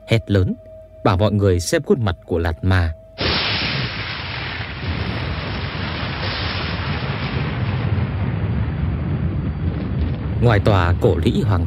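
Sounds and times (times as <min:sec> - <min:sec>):
speech: 0:00.1 - 0:03.0, 0:10.4 - 0:11.6
deep rumbling thunder: 0:03.2 - 0:11.6.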